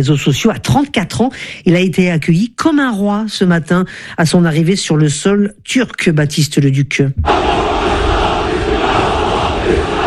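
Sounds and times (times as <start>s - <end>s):
speech: 0.0s - 7.9s
hundreds of Turkish fans chanting at Istanbul Atatürk airport to greet Mohamed Salah: 7.2s - 10.0s.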